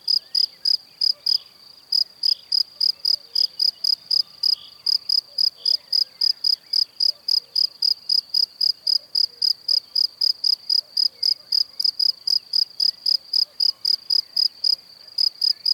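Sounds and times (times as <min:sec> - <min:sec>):
cricket chirping: 0:00.0 - 0:15.7.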